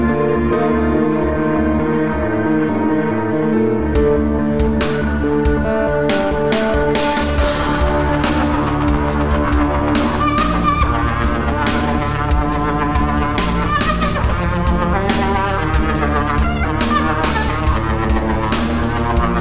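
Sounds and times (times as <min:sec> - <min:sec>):
theatre music: 0:00.0 - 0:19.3.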